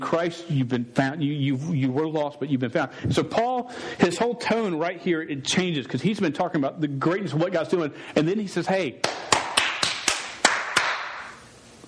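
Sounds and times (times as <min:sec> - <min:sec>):
speech: 0:00.0 - 0:09.4
single hand claps: 0:09.0 - 0:11.3.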